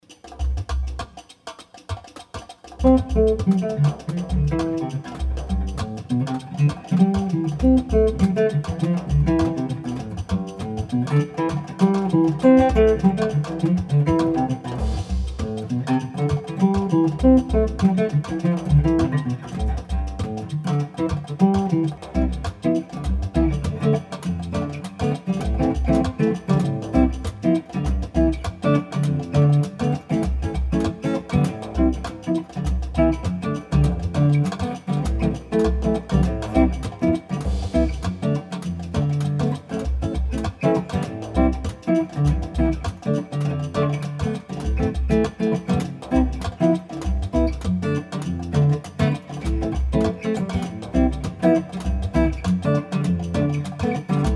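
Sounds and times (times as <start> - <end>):
swinging bossa nova music: 0.0 - 54.3.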